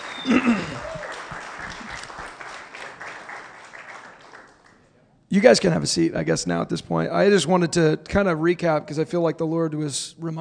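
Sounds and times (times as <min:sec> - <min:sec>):
audience applause: 0:00.0 - 0:04.8
speech: 0:05.3 - 0:10.3.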